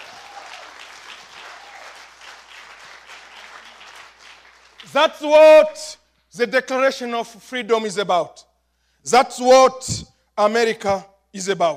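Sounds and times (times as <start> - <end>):
audience clapping: 0.0 - 5.1
speech: 4.8 - 11.7.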